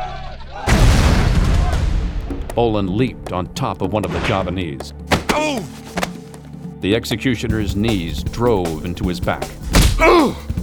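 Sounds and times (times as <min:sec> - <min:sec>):
grenade explosion: 0:00.7 - 0:02.5
speech: 0:02.6 - 0:06.0, 0:06.8 - 0:10.5.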